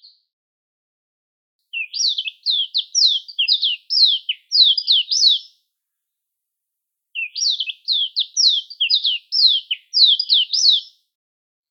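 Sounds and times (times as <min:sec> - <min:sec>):
Mayotte white-eye calls: 0:01.8 - 0:05.4, 0:07.2 - 0:10.9.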